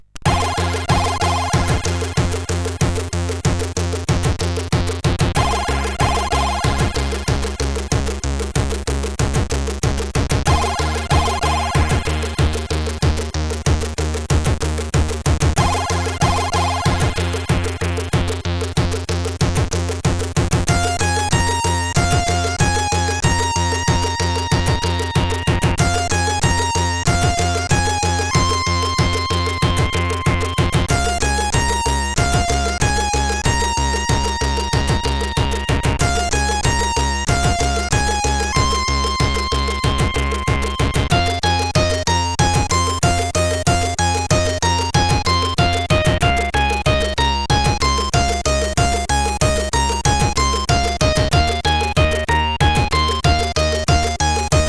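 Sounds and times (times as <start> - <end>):
SID CSG8580R5 chip intro music: 0.3 - 54.6.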